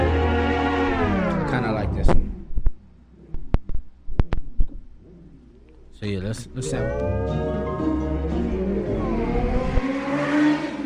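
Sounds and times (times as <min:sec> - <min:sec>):
cars driving fast outside with engines revving hard: 0:00.0 - 0:02.5, 0:07.9 - 0:10.8
speech: 0:06.0 - 0:08.0.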